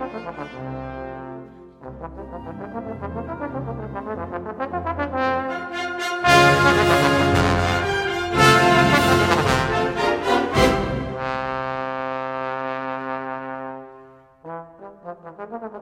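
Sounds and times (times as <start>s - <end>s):
trombone theme and variations: 4.0s - 15.8s.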